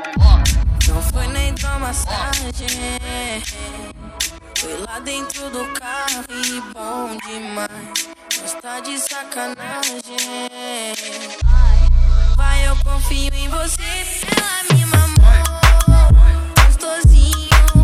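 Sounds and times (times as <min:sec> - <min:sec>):
low bass: 0:00.0 - 0:05.8, 0:11.4 - 0:14.3, 0:15.1 - 0:17.8.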